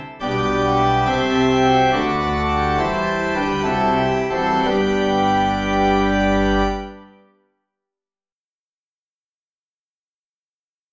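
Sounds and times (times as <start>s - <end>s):
organ playing hymns without words: 0.0s - 7.2s.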